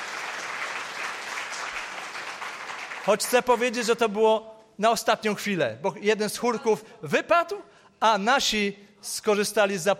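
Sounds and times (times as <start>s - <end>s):
church congregation applauding a choir, conductors and accompanists: 0.0s - 3.8s
speech: 3.1s - 9.9s.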